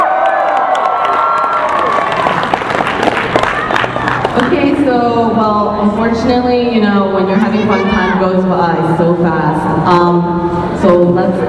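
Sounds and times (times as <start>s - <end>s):
crowd of fans cheering and screaming: 0.0s - 4.3s
clapping: 0.1s - 4.5s
speech: 4.9s - 11.4s.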